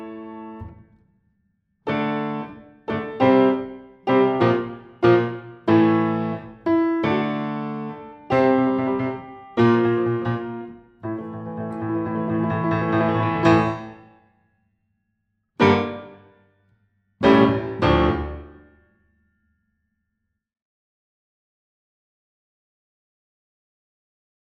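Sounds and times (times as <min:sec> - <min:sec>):
instrumental music: 0:00.0 - 0:01.0, 0:01.9 - 0:14.2, 0:15.6 - 0:16.4, 0:17.2 - 0:18.8.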